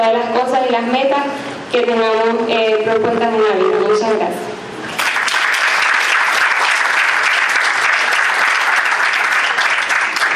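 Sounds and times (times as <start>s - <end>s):
speech: 0.1s - 4.5s
audience applause: 4.9s - 10.3s.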